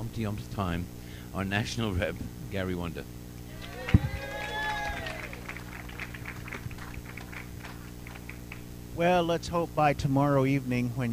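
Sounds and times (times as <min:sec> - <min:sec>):
speech: 0:00.1 - 0:03.2, 0:09.0 - 0:11.1
audience applauding: 0:03.5 - 0:08.6.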